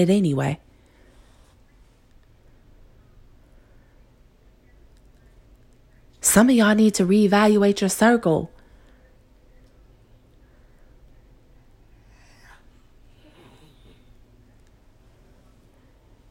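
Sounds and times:
speech: 0.0s - 0.6s, 6.3s - 8.6s
two-year-old snoring while sleeping: 12.0s - 14.1s.

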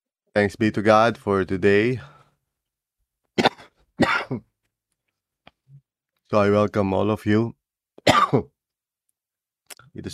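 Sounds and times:
speech: 0.4s - 2.1s, 6.3s - 8.5s
person coughing harshly: 3.4s - 4.5s, 8.0s - 8.5s.

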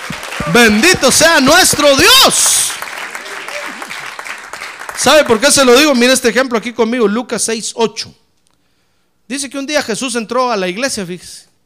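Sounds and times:
audience applause: 0.0s - 5.9s
speech: 0.5s - 2.9s, 5.0s - 8.2s, 9.3s - 11.5s.

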